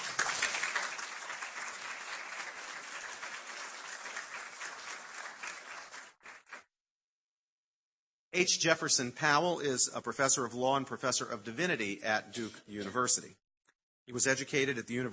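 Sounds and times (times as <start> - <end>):
audience clapping at an evening university law lecture: 0.0 - 6.6
speech: 8.4 - 13.4, 14.1 - 15.1.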